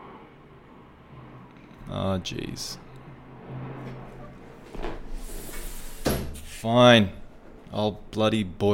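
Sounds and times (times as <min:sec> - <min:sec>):
airplane flying overhead: 0:00.0 - 0:04.7
speech: 0:01.9 - 0:02.8, 0:06.6 - 0:08.7.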